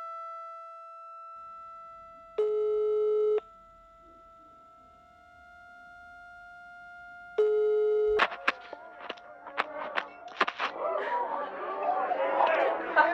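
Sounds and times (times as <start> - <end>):
steady hum: 1.4 - 10.8
electronic ringback tones of an outgoing phone call: 7.4 - 8.4
clicks and rustling: 8.1 - 10.7
person talking on a phone call: 8.2 - 10.8
laughter: 8.3 - 13.1.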